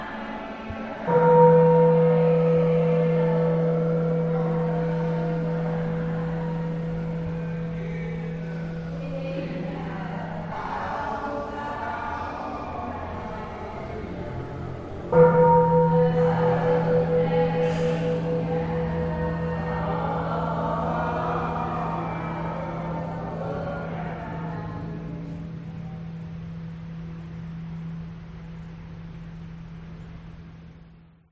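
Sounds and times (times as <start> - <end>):
people praying in a Caodaism church in Vietnam: 0.0 - 26.2
Caodaism church bell in Vietnam: 1.0 - 11.2, 14.4 - 26.7.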